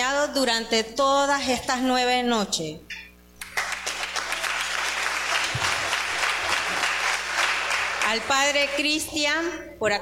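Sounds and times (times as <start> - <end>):
speech: 0.3 - 3.0, 8.1 - 10.0
audience applause: 3.4 - 8.8.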